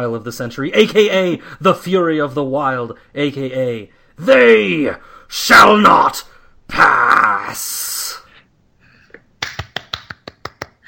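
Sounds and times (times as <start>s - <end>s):
speech: 0.0s - 8.2s
hand clapping: 9.4s - 10.8s.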